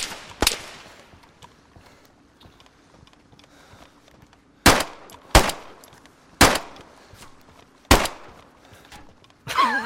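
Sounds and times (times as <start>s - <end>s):
gunshots from a warning shot in an online multiplayer game: 4.6s - 5.8s, 6.4s - 6.8s, 7.9s - 8.4s.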